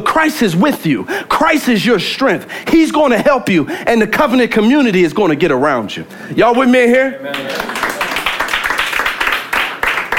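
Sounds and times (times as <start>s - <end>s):
speech: 0.2s - 7.7s
audience clapping: 7.2s - 10.1s.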